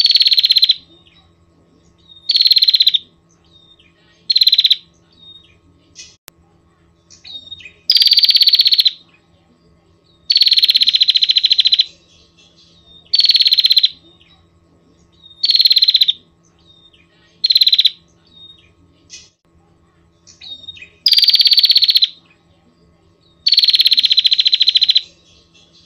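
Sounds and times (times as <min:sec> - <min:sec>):
Prinia rattling trills: 0:00.0 - 0:06.2, 0:06.9 - 0:25.8.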